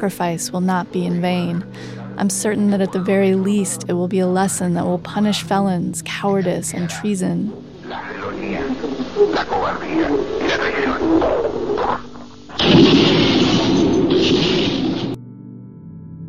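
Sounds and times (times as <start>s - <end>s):
speech: 0.0s - 12.0s
explosions recorded in radio broadcast: 12.5s - 15.2s.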